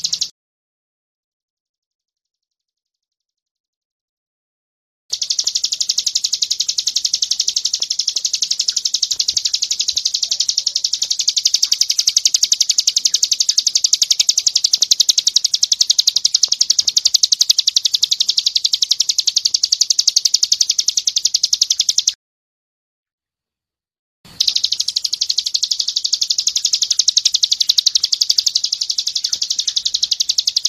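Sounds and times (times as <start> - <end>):
bird buzzy pulsed trill: 0.0 - 0.3, 5.1 - 22.2, 24.3 - 30.6.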